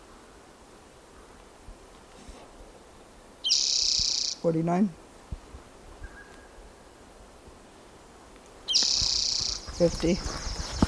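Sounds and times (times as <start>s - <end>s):
bird singing: 3.4s - 4.5s, 6.0s - 7.0s, 8.6s - 10.8s
speech: 4.4s - 5.0s, 9.8s - 10.4s.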